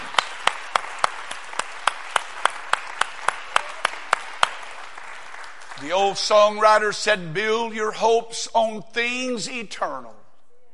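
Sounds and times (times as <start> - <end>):
audience clapping in unison rhythm: 0.0 - 6.9
speech: 5.9 - 10.2.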